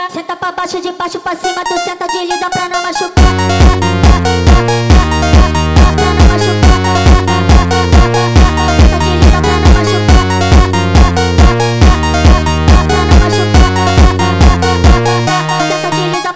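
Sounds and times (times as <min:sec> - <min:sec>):
sped up montagem music: 0:01.4 - 0:16.3.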